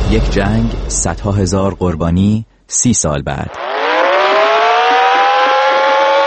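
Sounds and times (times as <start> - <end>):
speech: 0.2 - 3.6
air raid alarm siren: 3.5 - 6.2.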